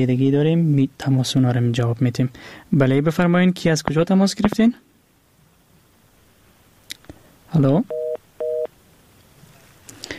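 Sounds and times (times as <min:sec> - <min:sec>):
speech: 0:00.0 - 0:04.8, 0:07.5 - 0:08.0
telephone beep after a radio caller's line cut off: 0:07.9 - 0:08.7.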